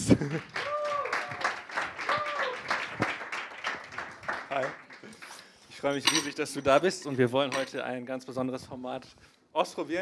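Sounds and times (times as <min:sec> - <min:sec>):
speech: 0:00.1 - 0:00.6, 0:05.8 - 0:10.0
audience applause: 0:00.2 - 0:05.0.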